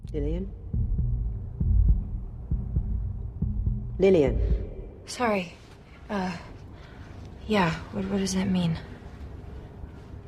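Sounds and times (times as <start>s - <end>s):
heartbeat heard through a stethoscope: 0.0s - 5.2s
speech: 0.1s - 0.7s, 4.0s - 6.5s, 7.5s - 8.9s.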